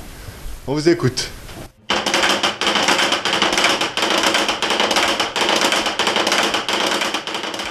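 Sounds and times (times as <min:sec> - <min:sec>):
speech: 0:00.7 - 0:01.4
giant wooden Holy Week ratchet rattle replacing church bells: 0:01.9 - 0:07.6.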